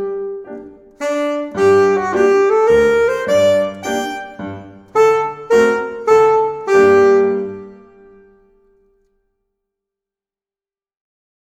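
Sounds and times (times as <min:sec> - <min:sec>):
bal musette saxophone: 0:01.0 - 0:08.4.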